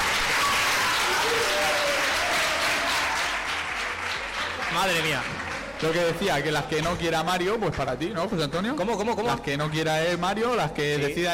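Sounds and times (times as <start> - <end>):
audience applause: 0.0 - 6.8
speech: 4.8 - 11.3.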